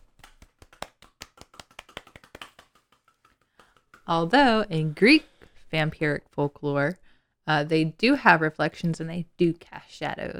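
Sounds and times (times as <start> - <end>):
soft golf clap: 0.0 - 4.1
speech: 4.1 - 10.3.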